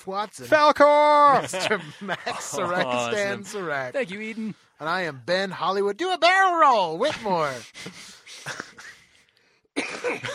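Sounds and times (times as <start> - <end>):
speech: 0.0 - 8.6, 10.1 - 10.3
laughter: 1.1 - 4.5, 7.0 - 9.1, 9.8 - 10.3
person coughing after laughing: 9.8 - 10.3.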